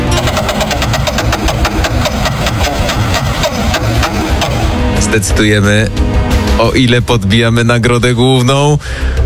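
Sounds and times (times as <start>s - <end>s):
wheel of fortune spinning with ticking clicks: 0.1s - 5.0s
loud dense rumble: 0.1s - 5.7s
speech: 5.1s - 9.2s.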